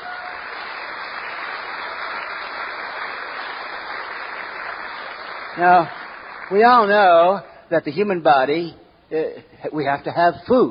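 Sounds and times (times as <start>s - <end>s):
crowd applauding: 0.0s - 6.9s
speech: 5.6s - 10.6s.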